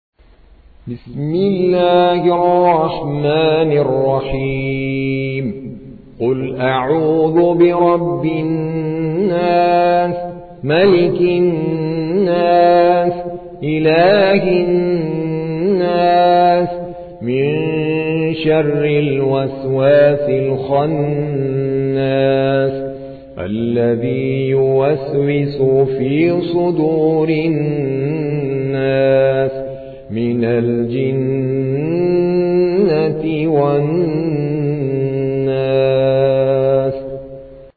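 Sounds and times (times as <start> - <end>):
Quran recitation by an Indian reciter: 0.9 - 37.7.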